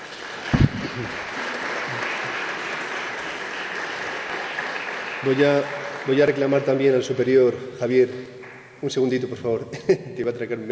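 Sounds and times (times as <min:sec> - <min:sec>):
applause: 0:00.0 - 0:07.4, 0:08.0 - 0:08.8
speech: 0:01.0 - 0:01.4, 0:05.2 - 0:10.7.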